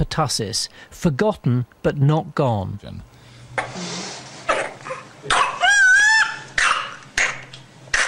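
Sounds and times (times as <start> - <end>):
speech: 0.0 - 3.8
baby coughing with whooping cough: 4.5 - 5.7, 6.6 - 8.0.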